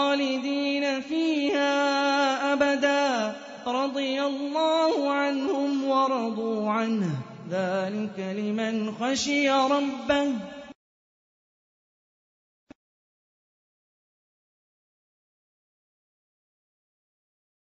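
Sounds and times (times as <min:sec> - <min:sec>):
Quran recitation: 0:00.0 - 0:10.8.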